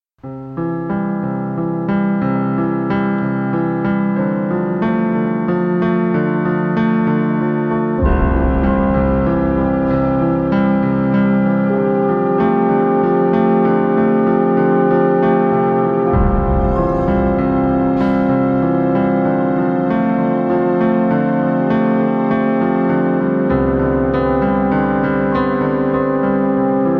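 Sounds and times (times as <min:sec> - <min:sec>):
piano: 0:00.2 - 0:26.9.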